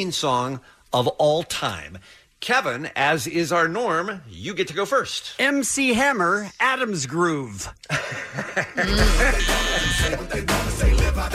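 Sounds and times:
speech: 0.0s - 11.3s
chuckling and voices: 7.7s - 10.8s
game show buzzer: 8.9s - 10.1s.

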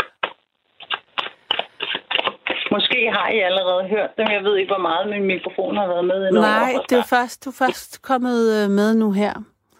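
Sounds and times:
tarot cards being shuffled: 0.0s - 2.7s
speech: 2.7s - 9.5s.

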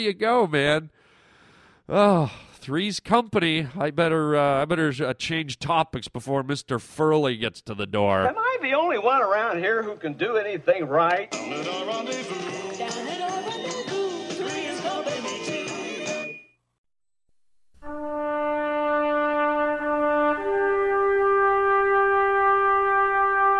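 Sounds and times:
speech: 0.0s - 1.0s, 1.9s - 13.6s
busy music: 11.3s - 16.3s
bugle playing two long held brass notes: 17.8s - 23.5s.

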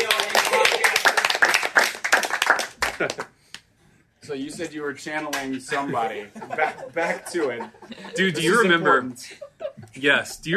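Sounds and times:
people clapping: 0.0s - 3.7s, 5.2s - 5.8s
laughter: 2.8s - 3.3s, 5.5s - 10.4s
speech: 4.3s - 10.5s.

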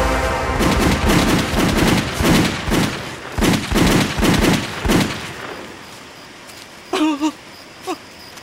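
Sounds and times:
firing squad volley of gunshots: 0.6s - 5.6s.

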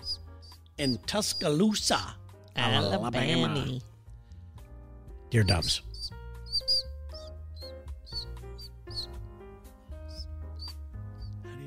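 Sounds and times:
high-pitched squeaks made with the mouth: 0.0s - 1.8s, 5.4s - 9.2s, 10.0s - 11.4s
speech: 0.8s - 3.9s, 5.3s - 5.9s.

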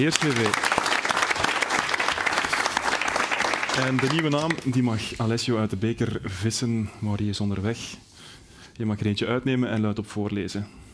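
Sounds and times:
speech: 0.0s - 0.7s, 3.8s - 8.1s, 8.8s - 10.8s
audience applauding: 0.0s - 4.9s.

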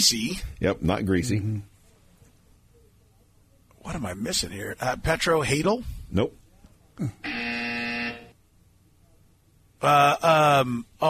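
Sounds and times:
speech: 0.0s - 1.7s, 3.8s - 6.4s, 7.0s - 7.4s, 9.8s - 11.0s
quiz buzzer buzzing: 7.2s - 8.4s.

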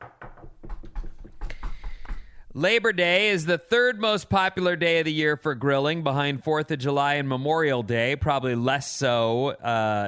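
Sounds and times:
dull knocking with rattle: 0.0s - 2.4s
speech: 2.6s - 10.0s.

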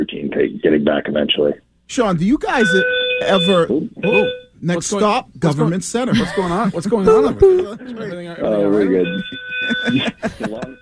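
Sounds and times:
speech: 0.0s - 10.8s
fire alarm going off in the Long Island area: 2.5s - 4.5s, 8.9s - 10.8s
laughter: 6.1s - 8.2s, 8.8s - 10.8s.

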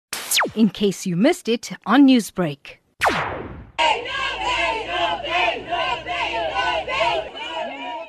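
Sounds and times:
speech: 0.4s - 3.2s
angry crowd of protesters outside the Verulam Magistrate's Court: 3.8s - 8.0s.

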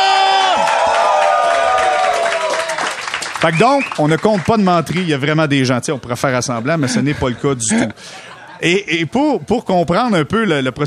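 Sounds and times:
live audience cheering: 0.0s - 5.1s
speech: 3.4s - 10.8s
laughter: 5.6s - 9.4s.

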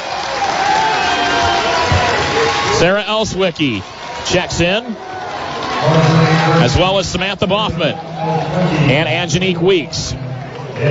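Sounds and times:
basketball arena crowd applauding and cheering: 0.0s - 10.8s
speech: 2.8s - 5.1s, 5.8s - 10.2s.

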